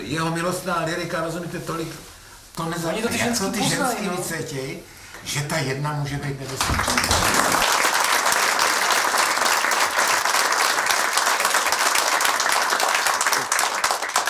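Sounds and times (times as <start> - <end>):
speech: 0.1 - 7.3
audience applause: 6.5 - 14.2.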